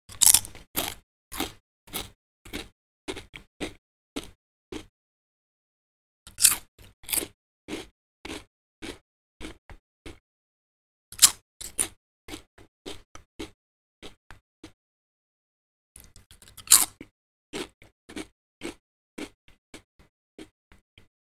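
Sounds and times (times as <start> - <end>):
chewing chips: 0.1 - 4.9, 6.3 - 10.2, 16.0 - 20.5.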